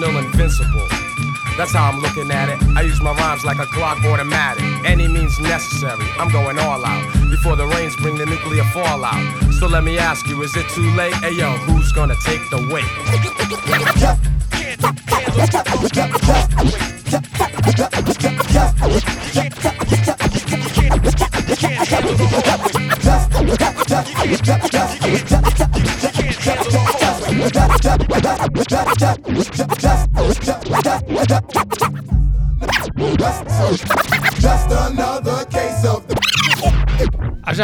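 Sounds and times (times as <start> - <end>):
speech: 0.4 - 1.0, 1.6 - 19.9, 21.6 - 26.8, 27.4 - 30.0, 30.8 - 32.0, 33.2 - 36.8
DJ turntable scratching: 13.1 - 14.2, 14.8 - 32.9, 33.8 - 34.6, 36.1 - 37.4.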